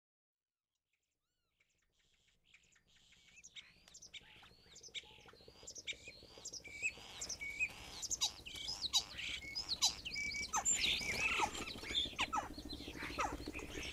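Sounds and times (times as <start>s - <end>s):
common starling song of whistles, clicks and chatter: 8.2s - 13.9s.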